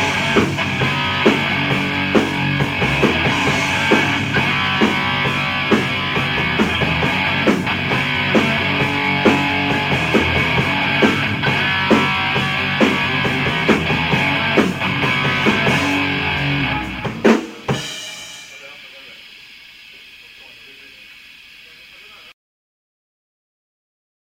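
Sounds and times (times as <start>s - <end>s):
instrumental music: 0.0s - 18.6s.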